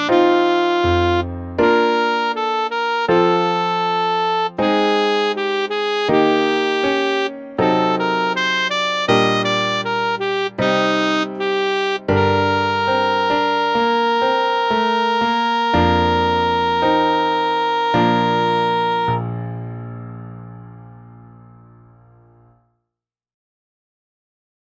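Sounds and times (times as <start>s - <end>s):
saxophone: 0.0s - 19.5s.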